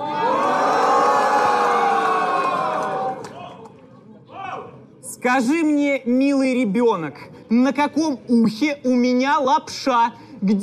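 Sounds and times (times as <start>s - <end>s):
crowd cheering and shouting: 0.0s - 3.5s
murmuring crowd: 0.0s - 5.0s
speech: 5.2s - 10.6s.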